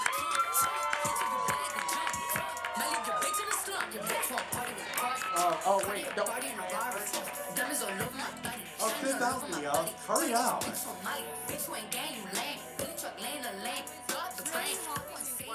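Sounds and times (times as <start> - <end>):
audience cheering for arriving guest: 0.0 - 8.1
scattered clapping: 0.0 - 9.0
speech: 6.2 - 8.4, 9.0 - 15.5.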